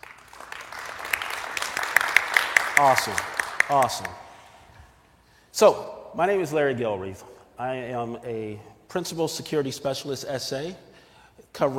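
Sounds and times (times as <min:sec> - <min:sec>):
audience applause: 0:00.0 - 0:04.2
speech: 0:02.8 - 0:04.2, 0:05.6 - 0:10.9, 0:11.6 - 0:11.7.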